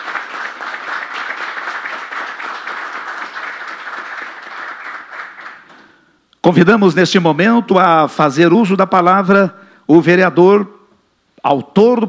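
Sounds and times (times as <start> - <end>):
audience applause: 0.0 - 5.9
speech: 6.4 - 10.8, 11.4 - 12.0.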